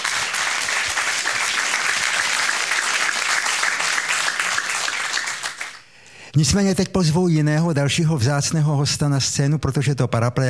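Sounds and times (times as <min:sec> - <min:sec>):
applause: 0:00.0 - 0:05.9
speech: 0:06.4 - 0:10.4.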